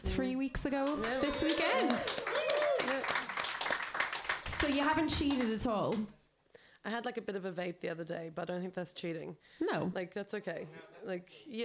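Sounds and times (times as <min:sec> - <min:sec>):
speech: 0:00.1 - 0:03.2, 0:04.6 - 0:06.2, 0:06.8 - 0:11.6
round of applause: 0:00.8 - 0:05.5.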